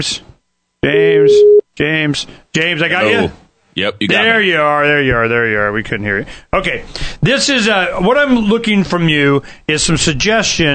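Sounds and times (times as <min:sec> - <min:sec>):
speech: 0:00.0 - 0:10.7
telephone tone: 0:01.0 - 0:01.6.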